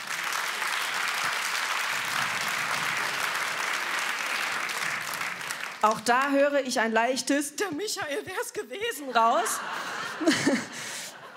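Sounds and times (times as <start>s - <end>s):
audience applause: 0.0s - 5.9s
speech: 5.8s - 11.0s
laughter: 9.0s - 11.3s.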